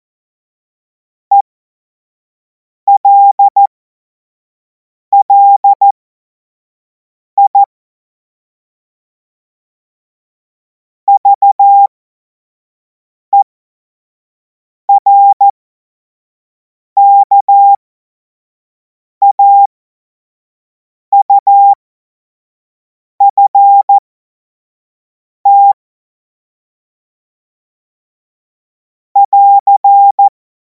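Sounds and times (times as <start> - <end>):
CW Morse code beeps: 2.9 - 3.7, 5.2 - 5.9, 11.1 - 11.9, 14.9 - 15.4, 17.0 - 17.8, 19.2 - 19.7, 21.2 - 21.8, 23.2 - 24.0, 25.5 - 25.8, 29.2 - 30.3.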